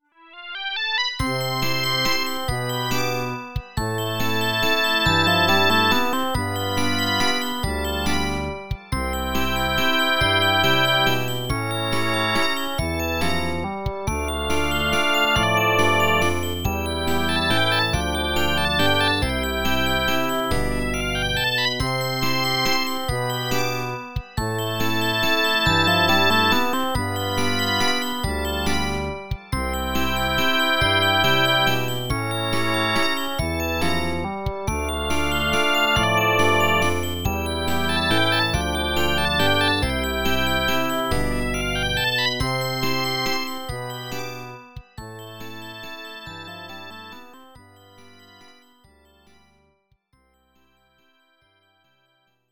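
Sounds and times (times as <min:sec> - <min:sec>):
waltz music: 0:00.5 - 0:49.6.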